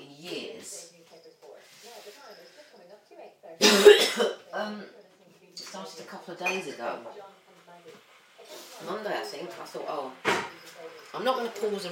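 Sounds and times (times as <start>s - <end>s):
coughing: 3.6s - 4.5s
speech: 6.3s - 11.9s.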